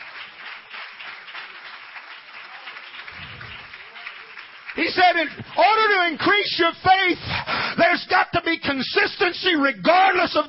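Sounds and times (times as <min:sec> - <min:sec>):
audience clapping hands: 0:00.0 - 0:07.0
speech: 0:04.8 - 0:10.4.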